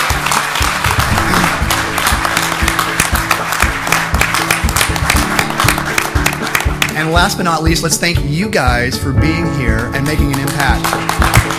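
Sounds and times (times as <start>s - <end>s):
audience clapping: 0.0s - 7.4s, 9.7s - 11.5s
speech: 7.0s - 11.2s.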